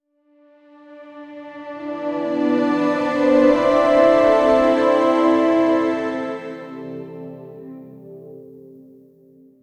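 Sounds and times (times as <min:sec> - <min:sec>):
hopeful orchestral cinematic pad: 0:01.3 - 0:08.0.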